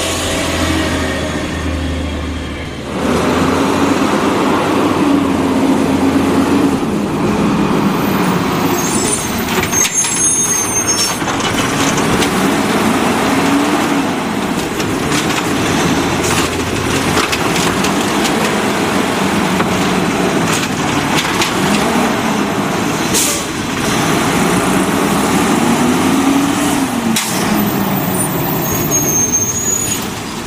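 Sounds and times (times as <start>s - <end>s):
garbage truck engine rumble: 0.0s - 30.4s
high squeals: 7.9s - 11.3s, 27.6s - 30.2s.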